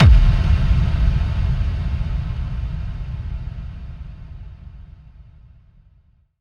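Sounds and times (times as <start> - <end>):
kick drum effect: 0.0 - 2.0.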